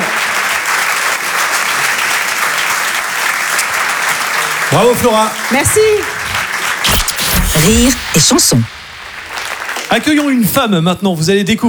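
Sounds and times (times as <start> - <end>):
audience applause: 0.0 - 6.9, 8.2 - 10.6
speech: 4.7 - 6.2, 7.6 - 8.8, 9.9 - 11.6.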